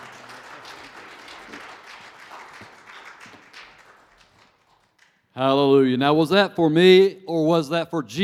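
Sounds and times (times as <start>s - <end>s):
audience applause: 0.0s - 5.1s
speech: 5.4s - 8.2s.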